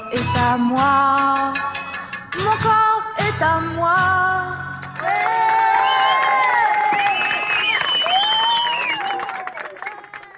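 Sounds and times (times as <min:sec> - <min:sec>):
speech: 0:00.1 - 0:01.8, 0:02.5 - 0:04.6
audience applause: 0:04.8 - 0:10.3.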